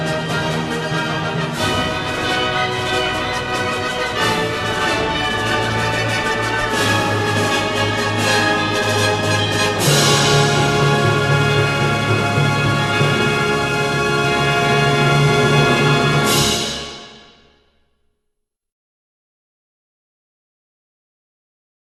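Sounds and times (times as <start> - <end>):
solemn fanfare: 0.0 - 17.4.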